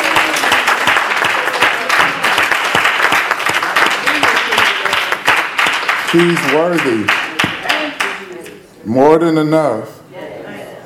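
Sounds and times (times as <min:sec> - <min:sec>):
audience hand clapping: 0:00.0 - 0:08.6
speech: 0:06.1 - 0:07.2, 0:08.8 - 0:10.0.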